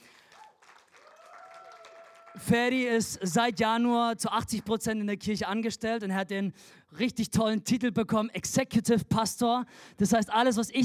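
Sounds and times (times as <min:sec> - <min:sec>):
applause: 0:00.0 - 0:02.8
speech: 0:02.4 - 0:10.8.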